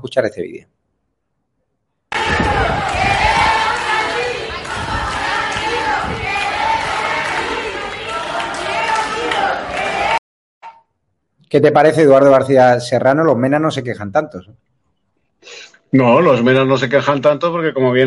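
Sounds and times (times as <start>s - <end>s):
speech: 0.0s - 0.8s, 11.5s - 14.7s, 15.4s - 18.0s
crowd of children screaming desperately: 2.1s - 10.2s.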